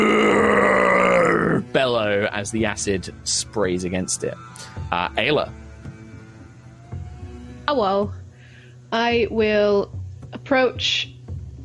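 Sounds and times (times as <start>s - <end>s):
person voicing a monster's roaring bellow: 0.0s - 1.7s
speech: 2.4s - 5.6s, 7.7s - 8.2s, 8.9s - 11.1s.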